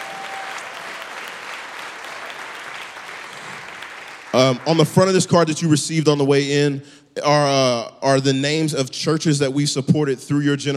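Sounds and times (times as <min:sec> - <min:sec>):
audience applause: 0:00.0 - 0:05.2
speech: 0:04.4 - 0:10.7.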